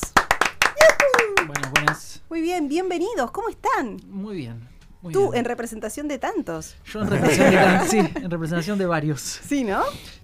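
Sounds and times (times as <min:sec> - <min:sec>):
hands clapping: 0:00.0 - 0:02.1
speech: 0:02.4 - 0:10.2
laughter: 0:07.0 - 0:08.3.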